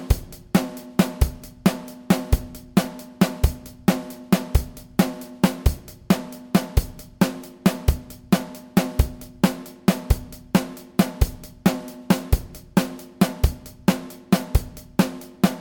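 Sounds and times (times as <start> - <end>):
drums in 5/8 time: 0.0 - 15.5.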